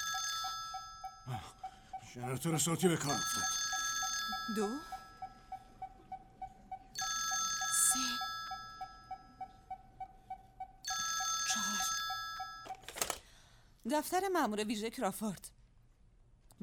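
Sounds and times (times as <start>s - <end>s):
telephone ringing: 0.0s - 13.2s
speech: 1.3s - 3.6s, 4.5s - 5.0s, 13.9s - 15.6s
telephone receiver being picked up: 12.6s - 13.2s.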